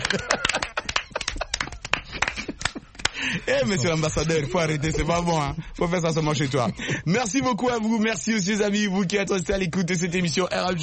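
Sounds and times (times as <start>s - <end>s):
audience applause: 0.0s - 2.5s
laughter: 0.0s - 7.5s
speech: 3.5s - 10.8s.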